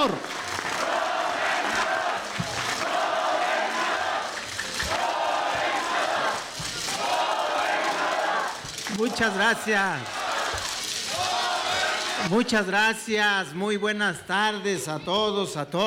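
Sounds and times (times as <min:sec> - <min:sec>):
speech: 0:00.0 - 0:00.4, 0:09.0 - 0:10.2, 0:12.2 - 0:15.8
crowd applause: 0:00.0 - 0:12.5
crowd cheering: 0:00.0 - 0:14.6.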